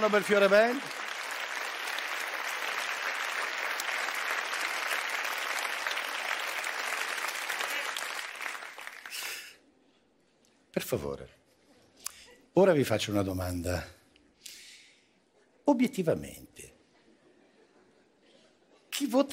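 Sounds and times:
speech: 0.0 - 1.0, 10.8 - 11.4, 12.6 - 14.0, 15.7 - 16.7, 19.0 - 19.3
audience applause: 0.0 - 9.5.

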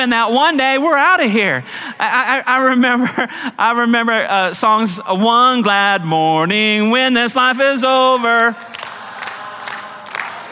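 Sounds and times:
speech: 0.0 - 8.7
audience clapping together in a steady rhythm: 7.8 - 10.4.

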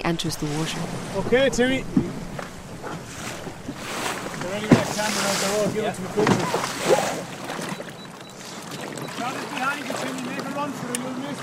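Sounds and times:
rigid inflatable boat on choppy water: 0.0 - 11.4
speech: 0.1 - 2.1, 4.5 - 7.4, 9.2 - 11.4.

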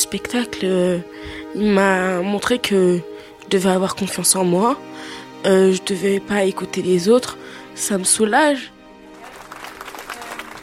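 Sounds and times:
speech: 0.1 - 8.8
audience applauding: 9.0 - 10.6.

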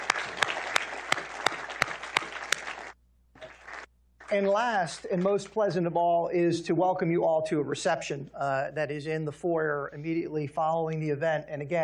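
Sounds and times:
audience applause thanking a panel at a national security event: 0.0 - 4.8
speech: 4.3 - 11.8.

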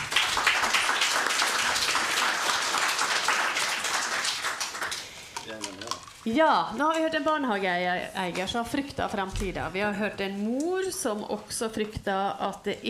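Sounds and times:
audience applause: 0.0 - 5.2
speech: 6.2 - 12.8.

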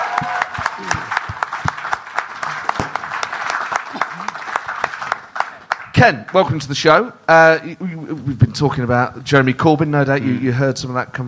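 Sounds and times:
audience applause for a band at a live Christmas special show: 0.0 - 6.4
speech: 6.0 - 11.2.

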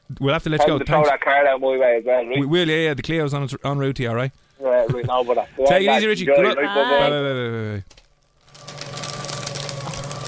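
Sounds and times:
speech: 0.1 - 8.0
paper shredder destroying and shredding something: 8.5 - 10.2.

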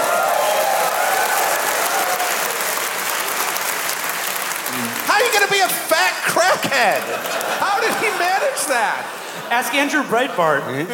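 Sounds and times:
audience applause: 0.0 - 9.5
speech: 5.2 - 10.9
laughter: 6.2 - 10.9.

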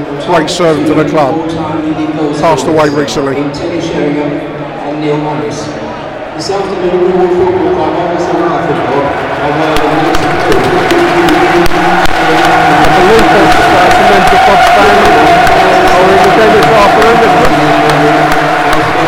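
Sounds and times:
speech: 0.0 - 5.8, 6.4 - 19.0
large stadium crowd applauding: 6.4 - 19.0.

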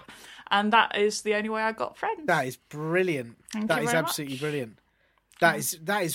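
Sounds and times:
speech: 0.6 - 4.8, 5.4 - 6.1
voice imitating a 1990s Formula One car: 3.7 - 4.6.

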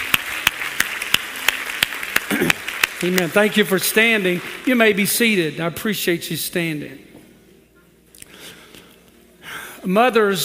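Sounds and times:
audience clapping in rhythm: 0.0 - 5.4
speech: 2.4 - 7.1, 9.8 - 10.4.

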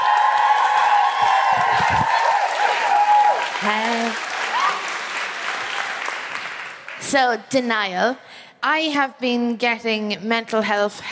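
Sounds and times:
audience cheering and whooping at a live comedy show: 0.0 - 6.5
speech: 3.6 - 4.3, 7.1 - 11.1.

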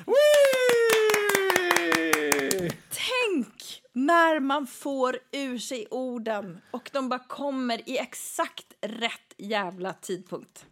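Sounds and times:
applause, hands clapping: 0.0 - 2.9
speech: 4.0 - 10.6.

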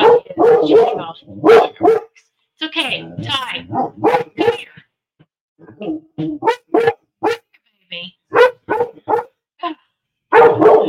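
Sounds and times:
dog barking: 0.0 - 2.2, 3.6 - 4.7, 6.4 - 7.5, 8.3 - 9.4, 10.3 - 10.8
speech: 0.6 - 1.7, 2.8 - 4.2.

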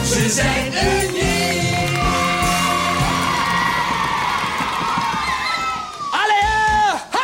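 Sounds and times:
speech: 0.2 - 1.2
loud audience cheering and applauding: 0.6 - 7.0
children shouting: 2.0 - 6.3
high-pitched whoops and shrieks: 3.0 - 6.4.

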